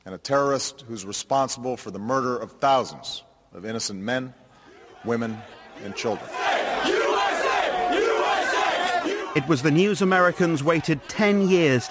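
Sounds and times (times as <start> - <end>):
speech: 0.0 - 4.4, 5.0 - 7.0, 9.4 - 11.8
large crowd cheering and shouting in celebration: 4.7 - 11.8.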